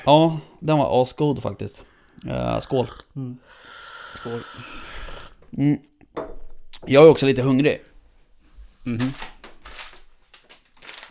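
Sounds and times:
speech: 0.0s - 4.8s, 5.5s - 7.9s, 8.8s - 9.3s
bag of dried reindeer chips crinkling: 8.9s - 11.0s.

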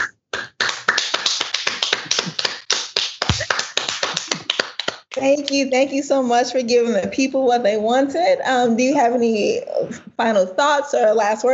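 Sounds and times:
applause from a small group: 0.4s - 5.2s
speech: 5.2s - 11.5s.

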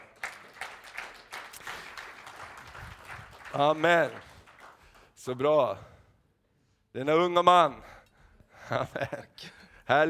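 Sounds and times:
audience applause: 0.0s - 5.1s
speech: 3.5s - 4.3s, 5.2s - 5.9s, 6.9s - 7.9s, 8.7s - 10.0s.

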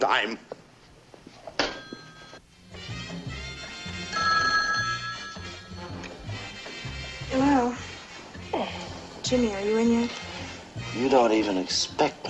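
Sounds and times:
speech: 0.0s - 0.6s, 9.3s - 10.3s, 11.0s - 12.2s
telephone bell ringing unanswered: 1.7s - 2.4s, 4.0s - 6.1s.

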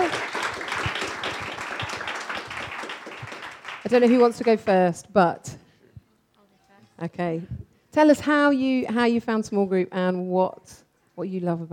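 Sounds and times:
audience cheering: 0.0s - 3.9s
audience clapping: 0.0s - 4.8s
speech: 3.9s - 5.5s, 7.0s - 11.7s.

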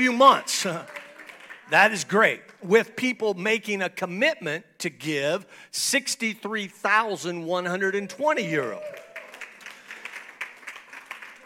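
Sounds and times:
speech: 0.0s - 1.0s, 1.7s - 9.0s
thin scattered audience clapping: 0.0s - 2.7s, 8.5s - 11.4s.

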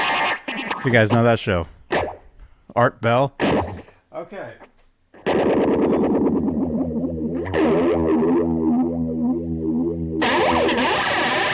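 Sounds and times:
distorted electric guitar with flanger pedal, ray-gun effect: 0.0s - 2.3s, 3.4s - 3.9s, 5.2s - 11.5s
speech: 0.8s - 1.8s, 2.7s - 3.7s, 4.3s - 4.6s.

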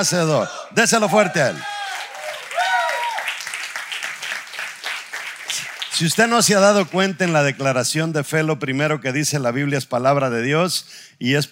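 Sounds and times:
speech: 0.0s - 1.7s, 6.0s - 11.5s
audience applauding: 1.0s - 7.8s.

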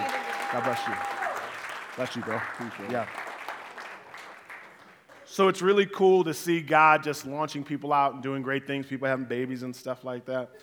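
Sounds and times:
audience applause: 0.0s - 5.3s
speech: 0.5s - 1.2s, 2.0s - 3.2s, 5.3s - 10.6s.

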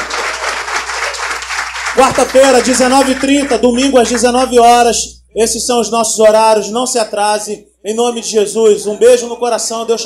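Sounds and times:
audience round of applause: 0.0s - 3.6s
speech: 2.0s - 10.0s.

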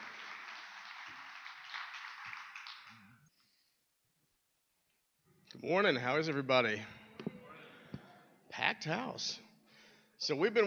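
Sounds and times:
audience applause: 0.0s - 3.2s
speech: 5.6s - 7.0s, 8.8s - 9.5s, 10.2s - 10.6s.

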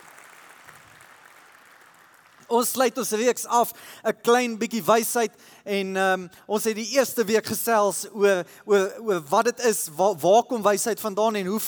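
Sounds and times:
audience clapping hands: 0.0s - 2.8s
speech: 2.5s - 11.6s.

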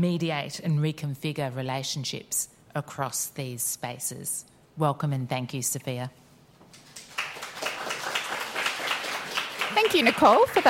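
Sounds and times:
speech: 0.0s - 6.2s, 9.8s - 10.6s
audience applause: 6.9s - 10.6s.

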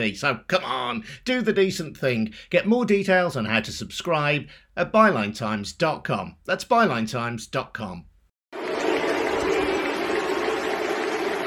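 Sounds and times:
speech: 0.0s - 8.1s
England football fans cheering and booing: 8.6s - 11.4s.

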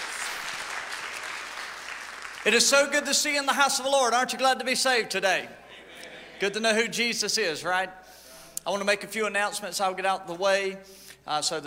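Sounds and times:
audience applause: 0.0s - 2.7s
speech: 2.4s - 5.6s, 6.4s - 11.6s.

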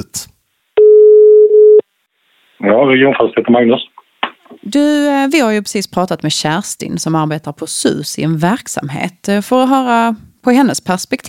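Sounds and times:
ringback tone of an outgoing phone call: 0.8s - 1.8s
speech: 2.6s - 4.0s, 4.6s - 11.2s.

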